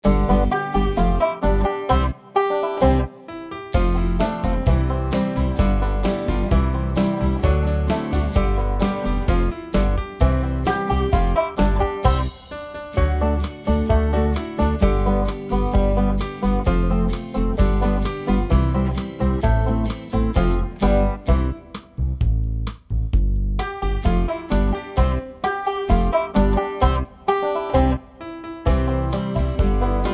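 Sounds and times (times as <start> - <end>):
instrumental music: 0.0 - 30.1.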